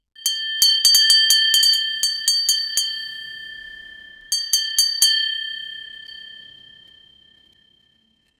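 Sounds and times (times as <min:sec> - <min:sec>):
loud ship's bell: 0:00.2 - 0:07.8.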